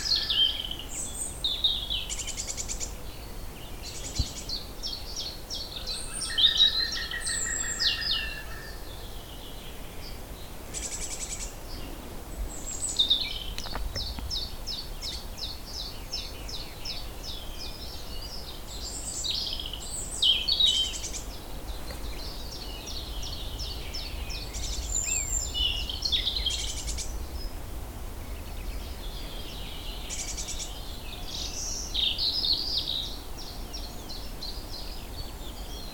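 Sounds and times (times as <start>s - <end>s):
birds ambience: 0.0s - 35.9s.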